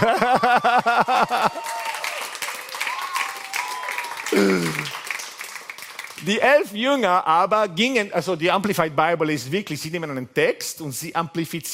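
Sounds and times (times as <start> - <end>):
speech: 0.0 - 1.8, 4.4 - 4.9, 6.3 - 11.7
people laughing: 0.0 - 2.0
audience applause: 0.0 - 6.6.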